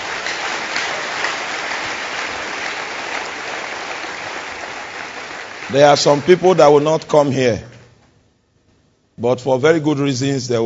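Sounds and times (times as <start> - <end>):
audience clapping: 0.0 - 7.1
speech: 5.7 - 7.7, 9.2 - 10.6.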